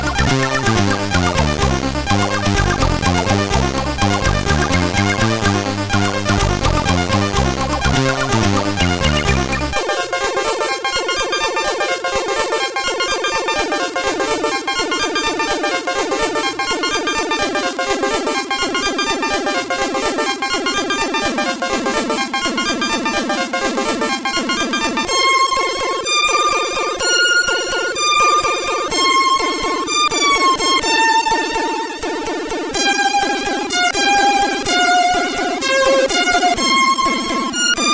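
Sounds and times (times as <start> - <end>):
remix on SID CSG8580R5 chip: 0.0 - 37.9.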